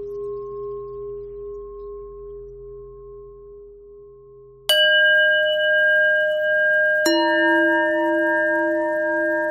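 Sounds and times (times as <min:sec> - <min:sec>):
bells ringing: 0:04.7 - 0:09.4.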